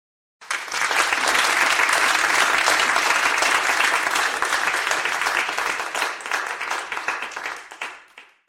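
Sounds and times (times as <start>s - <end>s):
audience applause: 0.4s - 8.4s.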